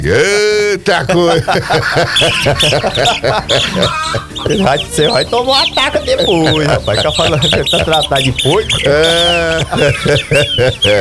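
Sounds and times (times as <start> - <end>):
speech: 0.0 - 10.9
laughter: 1.0 - 10.9
fowl clucking: 1.4 - 10.9
little birds chirping in the morning on a farm: 1.8 - 10.9.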